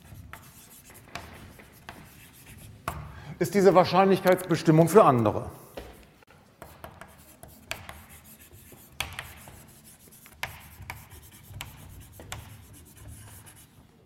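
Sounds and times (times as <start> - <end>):
chalk or marker writing a word on a board: 0.0 - 3.1, 6.6 - 13.9
speech: 3.4 - 5.6.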